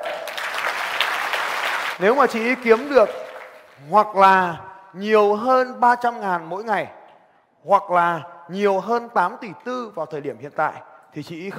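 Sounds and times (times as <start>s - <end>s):
crowd applauding: 0.0s - 3.9s
speech: 2.0s - 3.2s, 3.8s - 7.0s, 7.6s - 11.5s.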